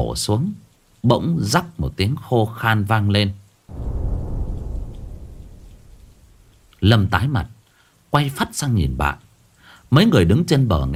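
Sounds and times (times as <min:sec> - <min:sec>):
speech: 0:00.0 - 0:03.4, 0:06.8 - 0:07.5, 0:08.1 - 0:09.2, 0:09.9 - 0:10.9
rain-like hiss: 0:00.0 - 0:07.1, 0:07.7 - 0:10.9
deep heavy thunder rumble: 0:03.7 - 0:07.0.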